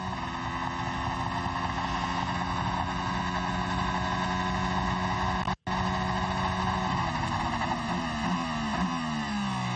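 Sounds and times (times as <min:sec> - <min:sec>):
Formula 1 car engine whine starting a timed qualifying lap: 0:00.0 - 0:09.7.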